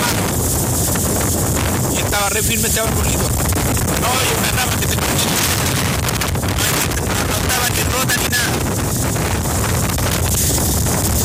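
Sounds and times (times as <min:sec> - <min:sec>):
strong wind in the Flamenco area buffeting the microphone: 0:00.0 - 0:11.2
speech: 0:02.4 - 0:04.5.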